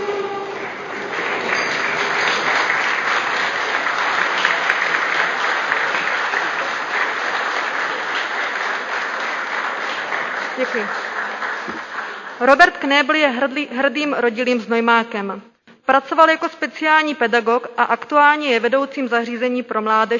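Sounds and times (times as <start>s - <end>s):
council members applauding: 0.0s - 13.2s
speech: 10.6s - 11.0s, 12.4s - 20.1s.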